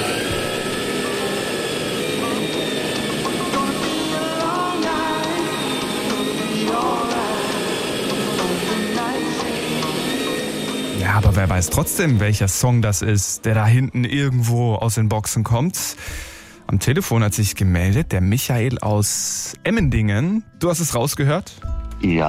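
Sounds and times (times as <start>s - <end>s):
vacuum cleaner running: 0.0s - 13.5s
speech: 11.4s - 22.2s.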